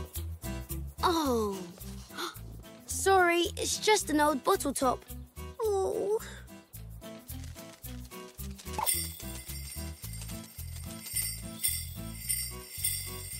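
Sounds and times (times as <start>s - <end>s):
music with a bouncing bass line: 0.0s - 13.3s
speech: 1.0s - 6.2s
small bell jingling: 8.4s - 13.3s.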